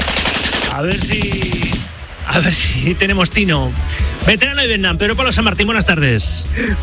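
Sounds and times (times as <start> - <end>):
machine gun fire: 0.0 - 2.0
speech: 0.8 - 1.7, 2.3 - 6.8.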